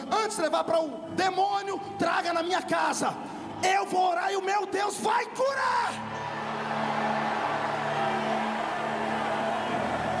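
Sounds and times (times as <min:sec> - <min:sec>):
speech: 0:00.0 - 0:07.0
audience shouting together: 0:06.1 - 0:10.1.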